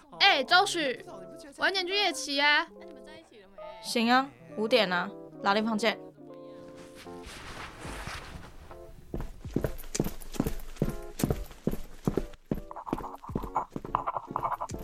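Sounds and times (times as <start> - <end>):
speech: 0.4 - 2.9, 3.8 - 6.1
footsteps: 6.7 - 14.8.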